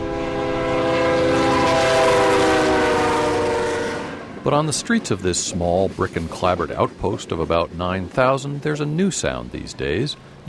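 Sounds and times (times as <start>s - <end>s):
freight train horn multi-toned blast: 0.0s - 4.5s
freight train rumbling past: 0.0s - 10.4s
speech: 4.5s - 10.4s.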